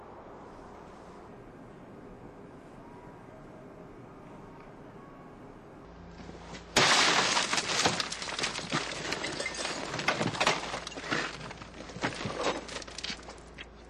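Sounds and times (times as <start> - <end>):
car window smashed in a break-in: 6.7 - 13.4
glass shards falling and scattering: 6.8 - 13.4.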